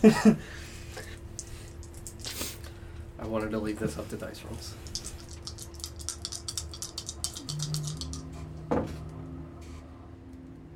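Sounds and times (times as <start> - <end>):
speech: 0.0 - 0.7, 3.3 - 4.9
coffee maker low steady hum: 0.0 - 10.7
coffee maker gurgling spurt: 4.5 - 8.4.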